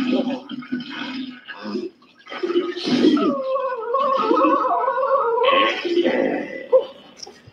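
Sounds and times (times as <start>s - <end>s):
voice imitating diarrhea on toilet: 2.8s - 6.9s.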